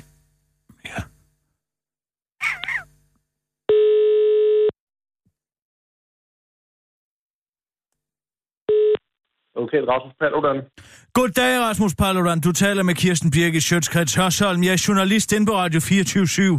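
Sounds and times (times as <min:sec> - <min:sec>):
telephone ringback tone: 0:03.7 - 0:04.7, 0:08.7 - 0:09.0
speech: 0:09.6 - 0:16.5.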